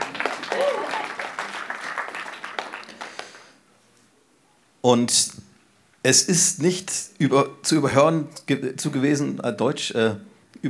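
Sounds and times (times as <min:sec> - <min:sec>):
short applause: 0:00.0 - 0:03.6
speech: 0:04.8 - 0:05.4, 0:06.0 - 0:10.6.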